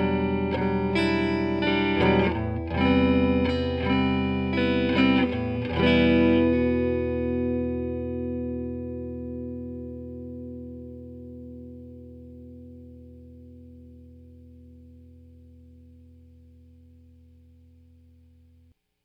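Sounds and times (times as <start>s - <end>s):
guitar amplifier with internal reverb: 0.0s - 18.7s.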